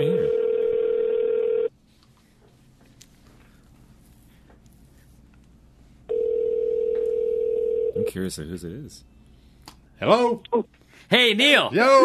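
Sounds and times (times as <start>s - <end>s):
electronic phone ringback tone: 0.1s - 1.7s, 6.1s - 8.1s
speech: 8.2s - 9.2s, 10.0s - 12.0s.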